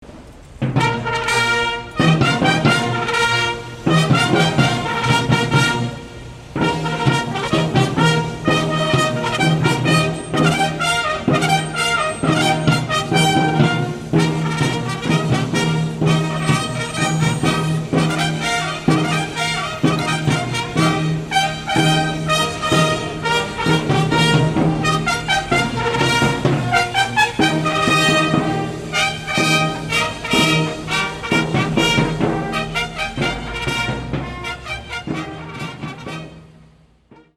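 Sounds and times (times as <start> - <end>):
fanfare brass band playing: 0.6 - 37.3.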